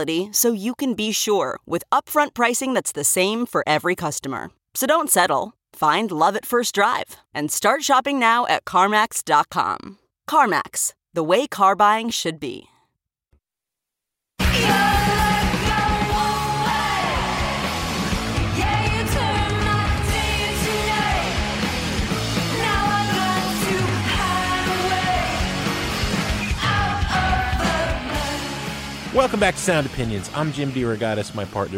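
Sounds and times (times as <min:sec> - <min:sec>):
speech: 0:00.0 - 0:12.7, 0:29.2 - 0:31.7
rock song with yelled vocals: 0:14.4 - 0:29.4.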